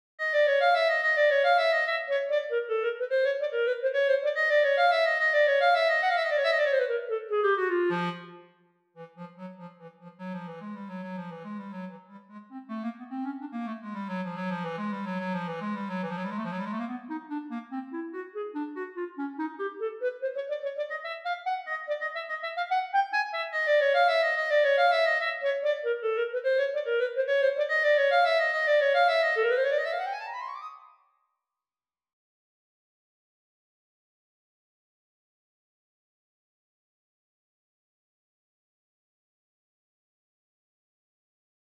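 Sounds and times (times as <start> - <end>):
clarinet: 0.2 - 31.0.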